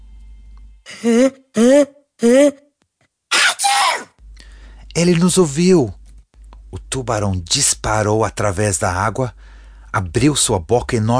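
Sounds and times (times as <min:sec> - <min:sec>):
voice imitating a big sneeze: 0:00.9 - 0:02.7, 0:03.3 - 0:04.2
speech: 0:01.0 - 0:02.6, 0:05.0 - 0:06.0, 0:06.9 - 0:11.1.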